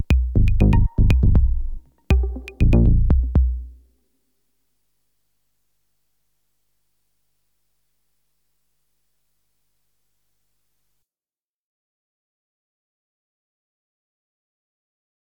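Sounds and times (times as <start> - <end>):
disco music mix: 0.0 - 3.8.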